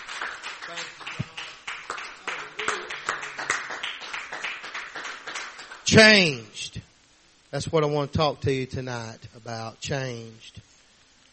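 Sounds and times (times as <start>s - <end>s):
audience clapping hands: 0.0s - 6.1s
speech: 5.9s - 6.8s, 7.5s - 10.6s.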